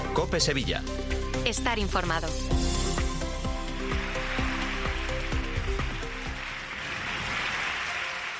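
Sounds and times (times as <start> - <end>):
speech: 0.2 - 2.7
applause in the Basílica de la Macarena: 2.8 - 8.3
cheers to the Virgin in the Basílica de la Macarena: 3.8 - 8.3.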